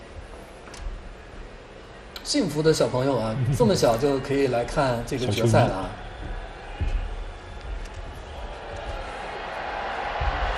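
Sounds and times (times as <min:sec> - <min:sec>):
speech: 0:02.3 - 0:06.0
stadium crowd cheering: 0:03.6 - 0:10.5.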